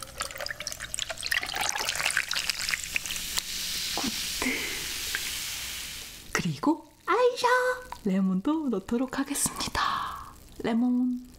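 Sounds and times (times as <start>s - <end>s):
cola poured over large ice cubes: 0.0s - 6.3s
speech: 6.6s - 9.8s, 10.6s - 11.3s.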